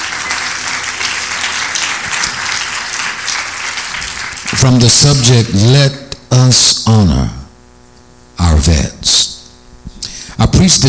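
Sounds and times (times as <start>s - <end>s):
audience clapping hands: 0.0s - 5.7s
speech: 4.6s - 7.4s, 8.4s - 9.4s, 10.4s - 10.8s.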